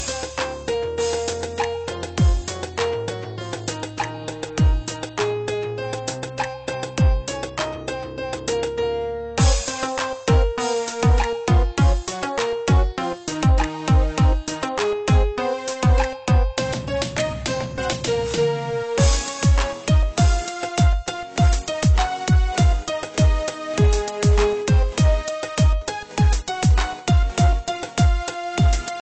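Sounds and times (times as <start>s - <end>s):
instrumental ringtone: 0.0s - 29.0s.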